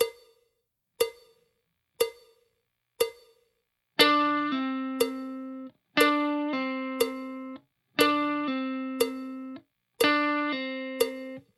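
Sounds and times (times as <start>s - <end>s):
slow blues guitar licks: 4.0s - 11.4s.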